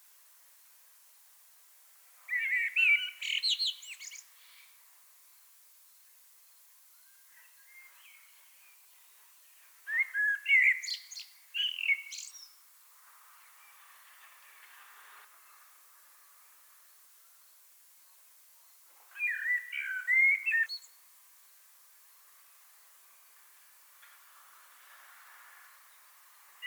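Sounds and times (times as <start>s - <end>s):
common blackbird singing: 2.3s - 4.7s, 9.9s - 12.6s, 19.1s - 21.0s.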